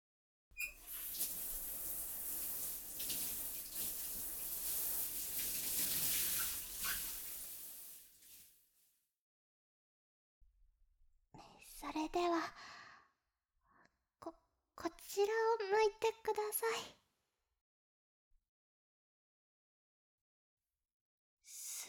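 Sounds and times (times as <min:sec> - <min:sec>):
water running from a tap or shower, rinsing off soap foam: 0:00.6 - 0:08.5
speech: 0:11.9 - 0:12.8, 0:15.2 - 0:17.0.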